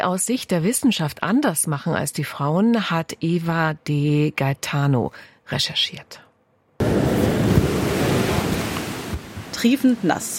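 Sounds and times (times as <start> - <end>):
speech: 0.0 - 6.2, 9.6 - 10.3
rushing water of a wild fast-flowing stream in a Munich city park: 6.8 - 10.3.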